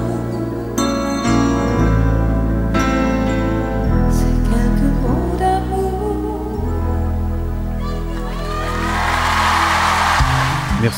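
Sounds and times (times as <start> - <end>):
song's last sustained chords ringing out: 0.0 - 10.9
audience applause: 8.1 - 10.9.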